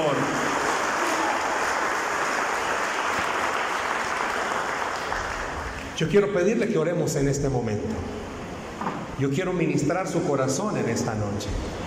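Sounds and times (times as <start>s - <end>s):
sustained applause from a large audience: 0.0s - 5.9s
speech: 6.0s - 8.2s, 9.2s - 11.8s.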